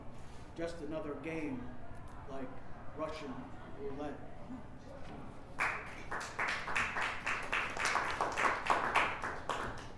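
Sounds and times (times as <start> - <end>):
speech: 0.6 - 6.8
audience clapping: 5.6 - 9.9.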